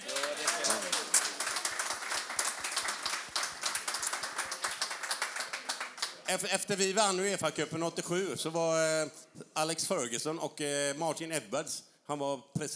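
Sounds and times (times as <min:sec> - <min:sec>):
audience applause: 0:00.0 - 0:06.3
speech: 0:06.3 - 0:12.7.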